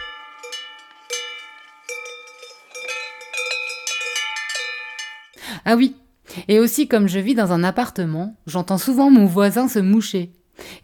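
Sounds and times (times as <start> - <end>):
mountain cowbells ringing: 0.0 - 5.4
speech: 5.5 - 10.4.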